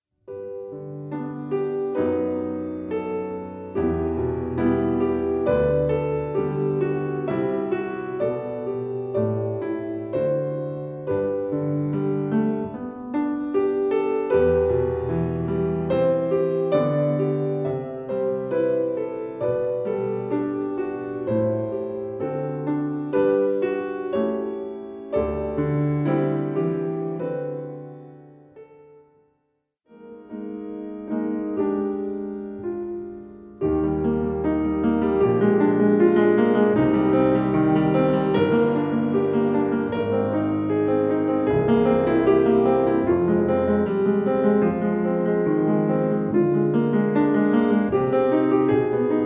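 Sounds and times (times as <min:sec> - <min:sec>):
piano: 0:00.0 - 0:49.2.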